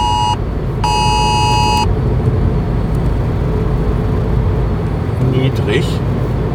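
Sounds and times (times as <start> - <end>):
phone hazard warning alert: 0.0 - 1.9
vehicle rumble: 0.0 - 6.5.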